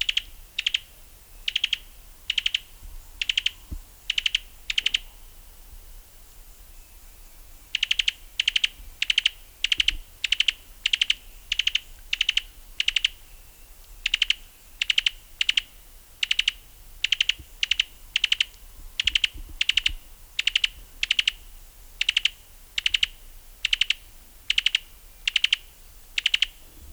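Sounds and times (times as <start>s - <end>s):
Cuban tody calling: 1.5s - 5.2s, 7.7s - 13.3s, 14.0s - 21.4s, 22.0s - 26.9s.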